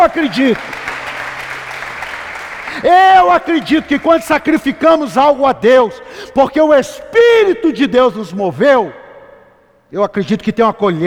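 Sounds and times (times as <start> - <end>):
audience applause: 0.0 - 4.8
speech: 0.1 - 0.9, 2.8 - 9.0, 9.9 - 11.0.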